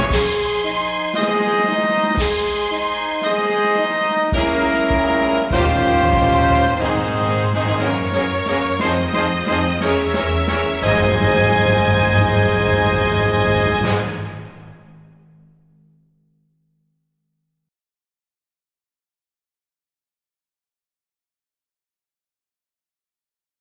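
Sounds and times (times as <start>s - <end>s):
accompaniment backing track music: 0.0s - 15.1s.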